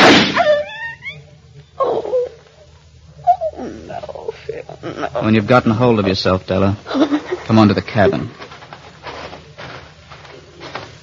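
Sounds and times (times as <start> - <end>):
pistol gunshot: 0.0 - 0.5
speech: 5.0 - 8.4.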